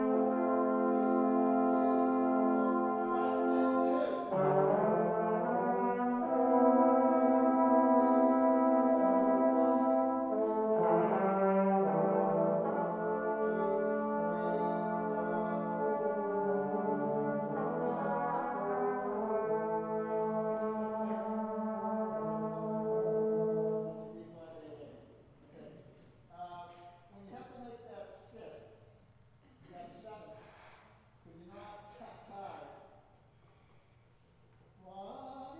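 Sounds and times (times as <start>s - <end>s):
brass instruments: 0.0s - 24.5s.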